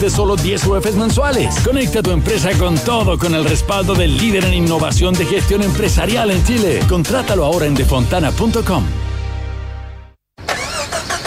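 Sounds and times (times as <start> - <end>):
speech: 0.0 - 9.1
car engine cranking but failing to start with a weak battery: 10.4 - 11.2.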